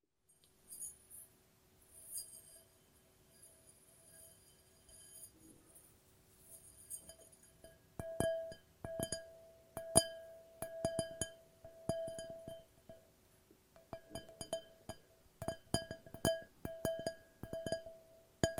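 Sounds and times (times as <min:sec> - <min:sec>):
glass tapping and ringing: 0:07.0 - 0:13.1, 0:13.8 - 0:18.5.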